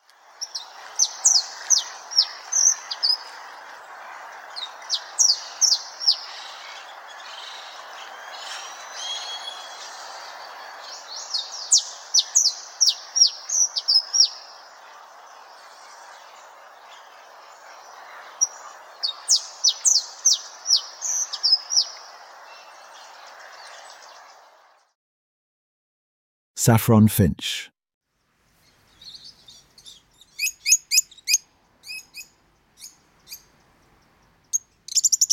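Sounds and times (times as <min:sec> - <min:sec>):
Black Francolin calling: 0:00.4 - 0:22.8, 0:28.9 - 0:33.5
speech: 0:26.6 - 0:27.7.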